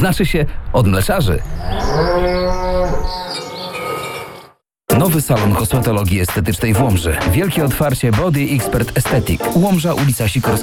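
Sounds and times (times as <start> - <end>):
speech: 0.0 - 3.2, 5.0 - 10.6
cow mooing: 1.6 - 4.6.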